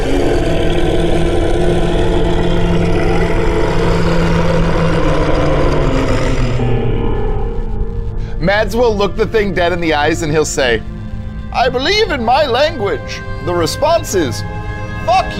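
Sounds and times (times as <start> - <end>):
monster's tremendous roar: 0.0 - 8.4, 13.3 - 15.3
speech: 8.5 - 10.9, 11.6 - 15.3.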